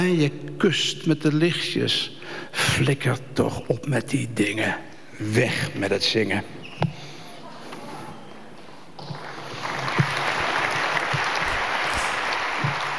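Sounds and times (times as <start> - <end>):
speech: 0.0 - 6.8
audience applause after poetry reading: 9.2 - 12.9.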